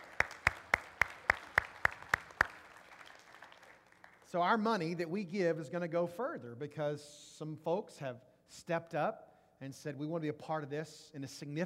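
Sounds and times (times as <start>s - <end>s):
audience applause: 0.0s - 4.3s
speech: 4.3s - 11.6s.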